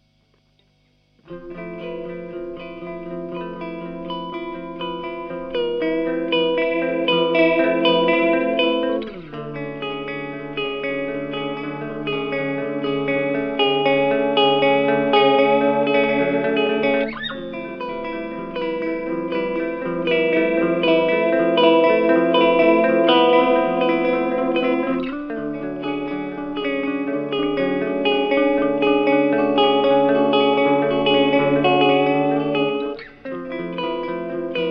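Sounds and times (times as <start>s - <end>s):
Earthquaker Devices Aqueduct shoegaze effects pedal sound: 0.0s - 34.6s.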